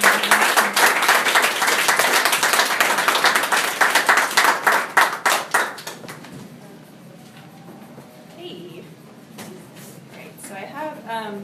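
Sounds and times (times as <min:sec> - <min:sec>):
audience applause for the next poet: 0:00.0 - 0:06.3.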